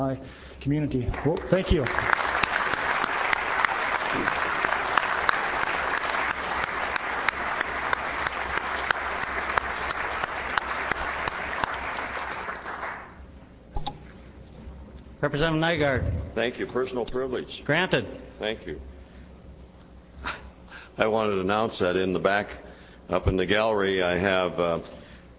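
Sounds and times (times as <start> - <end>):
speech: 0.0 - 2.2, 4.1 - 4.4, 15.3 - 18.9, 21.0 - 25.0
room full of people applauding: 1.1 - 13.2.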